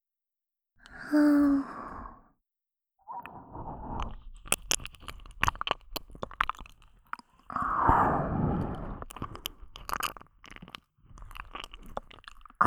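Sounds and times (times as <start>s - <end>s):
ear licking with saliva in the right ear: 3.3s - 12.6s.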